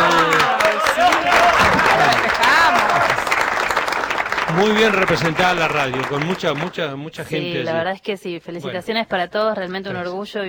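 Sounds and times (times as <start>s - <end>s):
crowd applauding: 0.0s - 7.0s
speech: 4.6s - 10.4s.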